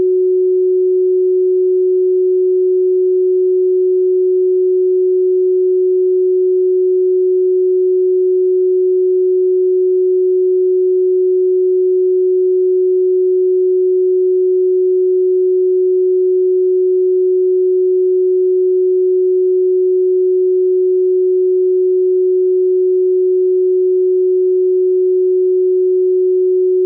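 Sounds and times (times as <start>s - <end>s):
369 Hz pure tone: 0.0s - 26.8s.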